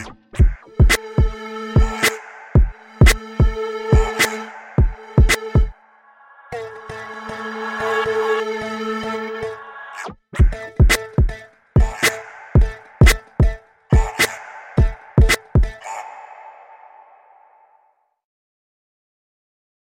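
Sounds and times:
beats: 0:00.4 - 0:05.7, 0:10.4 - 0:15.8.

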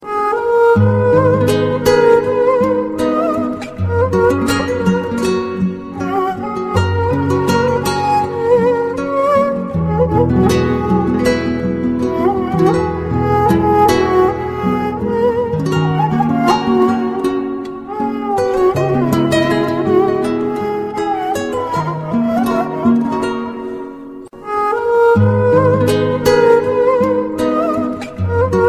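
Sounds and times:
string music: 0:00.0 - 0:28.6.

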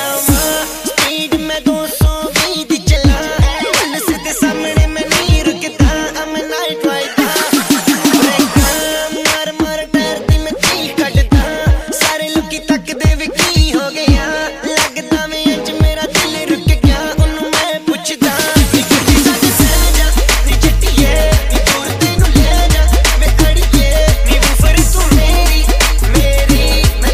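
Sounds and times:
dhol drum: 0:00.2 - 0:06.5, 0:07.2 - 0:27.1.

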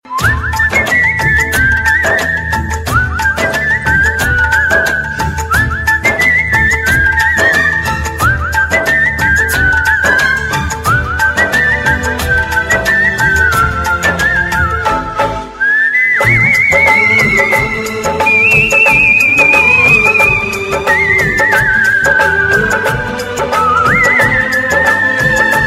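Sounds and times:
instrumental whistling melody: 0:00.0 - 0:25.6.

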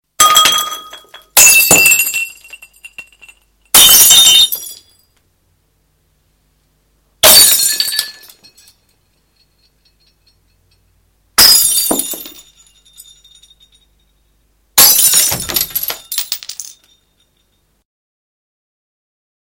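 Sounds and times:
glass breaking: 0:00.2 - 0:05.0, 0:07.2 - 0:10.4, 0:11.4 - 0:13.9, 0:14.8 - 0:17.5.

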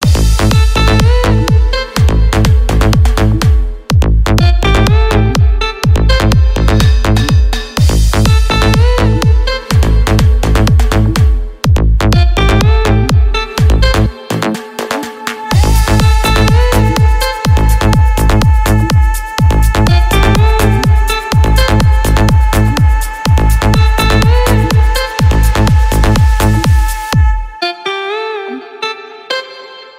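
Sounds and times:
house party music mix: 0:00.0 - 0:29.9.

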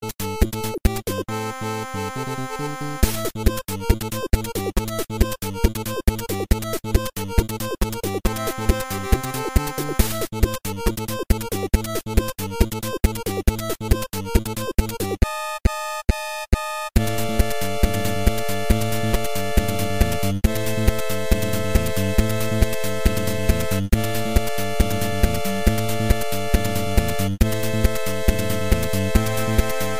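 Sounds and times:
8-bit chiptune: 0:00.1 - 0:29.9.

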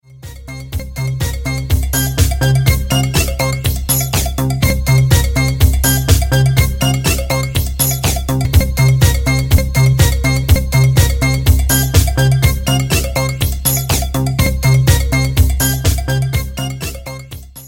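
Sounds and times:
funky tone: 0:00.5 - 0:17.6.

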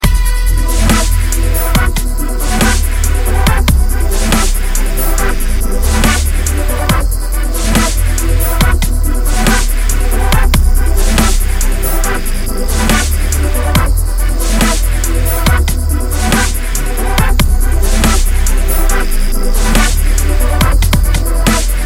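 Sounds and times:
chill dubstep music: 0:00.0 - 0:21.8.

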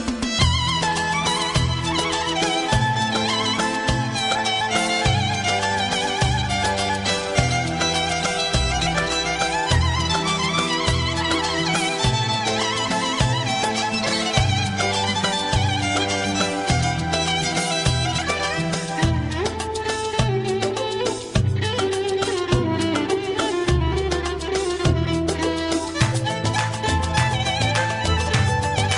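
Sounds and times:
Kurdish violin playing: 0:00.0 - 0:28.9.

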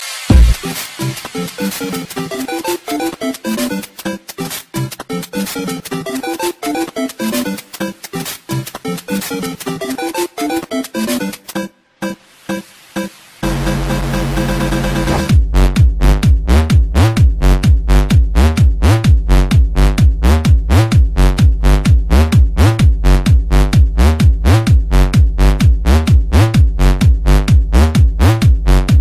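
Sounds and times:
electro music: 0:00.0 - 0:29.0.

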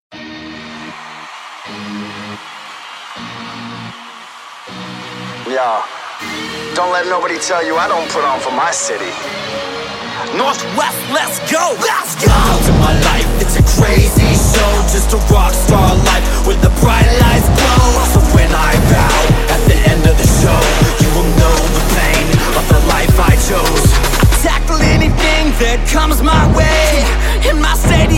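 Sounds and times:
anthem music: 0:04.7 - 0:28.1.

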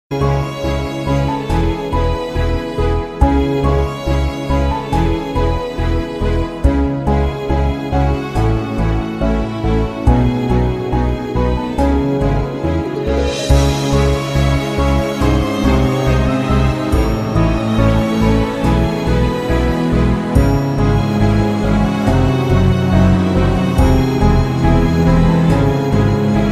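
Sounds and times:
instrumental music: 0:00.1 - 0:26.4.

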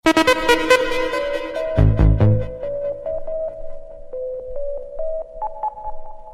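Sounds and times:
techno message tone: 0:00.1 - 0:03.6.

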